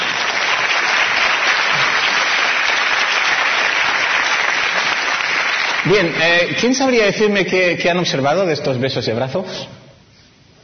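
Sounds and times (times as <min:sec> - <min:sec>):
audience applause: 0:00.0 - 0:06.8
speech: 0:05.9 - 0:09.8.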